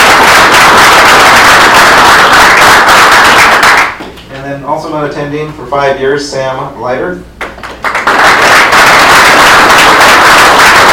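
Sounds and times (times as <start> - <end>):
round of applause: 0.0 - 4.0, 7.6 - 10.9
speech: 5.1 - 7.3.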